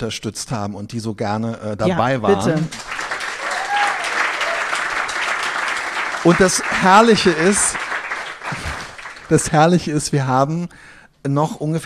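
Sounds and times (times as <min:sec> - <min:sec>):
speech: 0:00.0 - 0:03.0, 0:06.2 - 0:07.9, 0:09.3 - 0:11.8
audience applause: 0:02.0 - 0:09.9.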